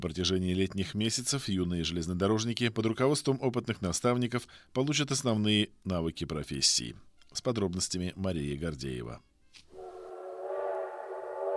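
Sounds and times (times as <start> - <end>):
speech: 0.0 - 9.3
children's railway train horn sounding a greeting signal: 9.7 - 11.5.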